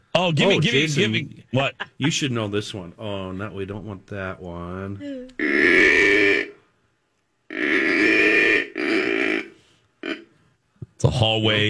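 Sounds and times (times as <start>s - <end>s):
speech: 0.2s - 6.2s, 11.0s - 11.6s
buck deer growling: 5.4s - 6.6s, 7.5s - 10.3s.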